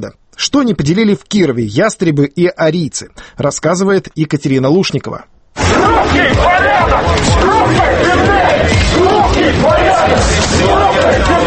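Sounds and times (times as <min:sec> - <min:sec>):
speech: 0:00.0 - 0:11.4
noisy crowd at a street march in Kirov: 0:05.6 - 0:11.4.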